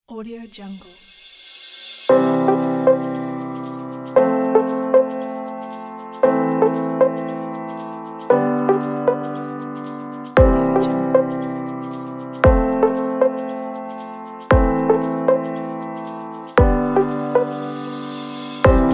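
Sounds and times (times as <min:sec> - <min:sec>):
corporate music: 0:02.1 - 0:18.9.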